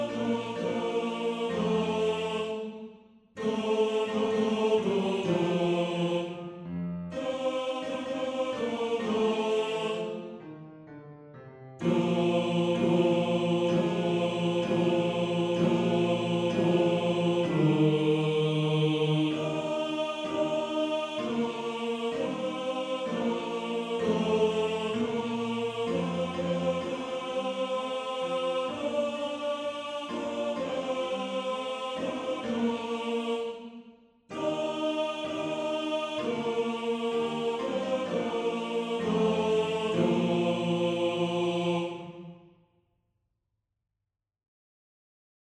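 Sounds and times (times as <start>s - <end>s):
second tenor part of a male choir singing: 0.0s - 10.4s, 11.8s - 42.5s.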